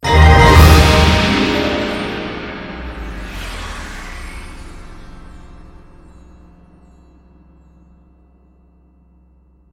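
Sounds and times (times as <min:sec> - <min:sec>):
big win ending jingle: 0:00.0 - 0:03.6.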